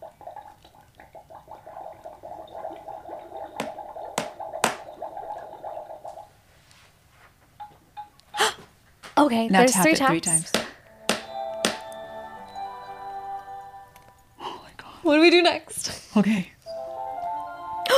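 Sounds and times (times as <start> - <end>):
bubbling cauldron: 0.0 - 6.5
speech: 9.2 - 10.6, 15.2 - 16.6.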